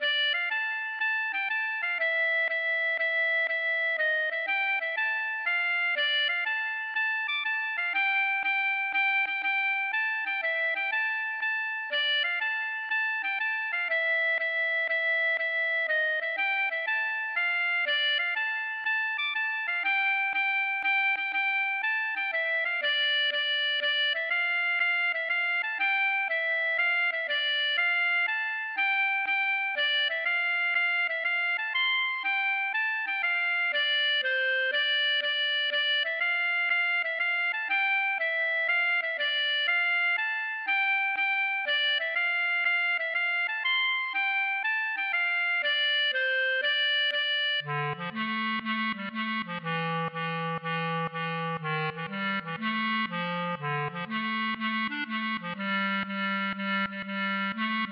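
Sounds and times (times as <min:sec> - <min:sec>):
mazurka: 0:00.0 - 0:57.8.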